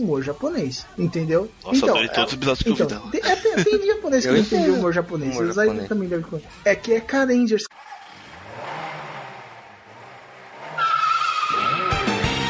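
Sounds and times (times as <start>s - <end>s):
speech: 0.0s - 7.8s
laughter: 1.8s - 4.9s
car engine humming and passing: 7.8s - 12.2s
tires squealing: 7.8s - 12.4s.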